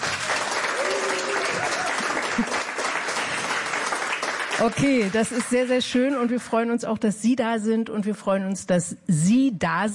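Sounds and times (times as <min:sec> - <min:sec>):
audience applause: 0:00.0 - 0:05.7
speech: 0:04.6 - 0:09.9.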